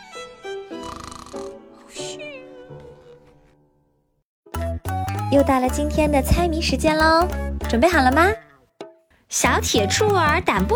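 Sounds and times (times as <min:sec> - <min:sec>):
voice imitating snoring: 0:00.7 - 0:02.2
speech: 0:05.3 - 0:08.4, 0:09.3 - 0:10.7.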